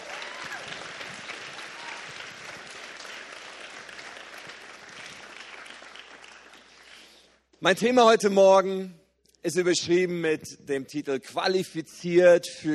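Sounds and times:
audience applause: 0:00.0 - 0:07.2
speech: 0:07.6 - 0:12.7.

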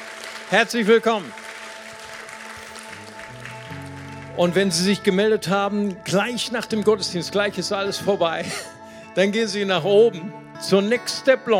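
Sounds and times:
audience applause: 0:00.0 - 0:05.0
speech: 0:00.5 - 0:01.4, 0:04.4 - 0:11.5
sustained keyboard or organ notes: 0:02.6 - 0:11.5
laughter: 0:08.4 - 0:08.8.

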